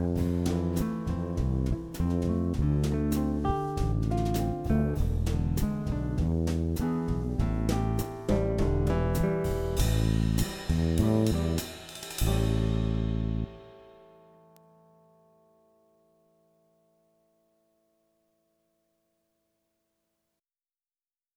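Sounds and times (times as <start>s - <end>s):
rock backing track for a guitar solo: 0.0s - 13.7s.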